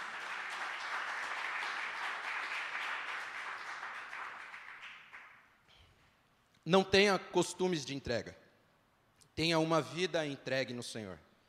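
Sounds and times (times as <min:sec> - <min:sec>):
audience applause: 0:00.0 - 0:05.4
speech: 0:06.7 - 0:08.4, 0:09.4 - 0:11.3.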